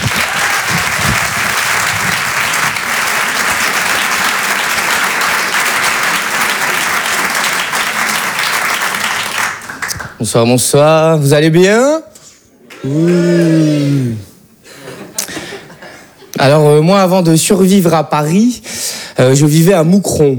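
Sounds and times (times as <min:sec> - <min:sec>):
audience applause at a French stand-up comedy show: 0:00.0 - 0:10.2
speech: 0:10.2 - 0:12.1, 0:12.8 - 0:14.3, 0:16.4 - 0:20.3.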